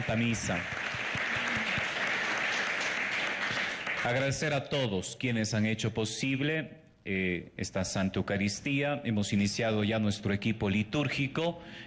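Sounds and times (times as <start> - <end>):
speech: 0.0 - 0.8, 4.0 - 11.8
audience applauding: 0.0 - 4.6.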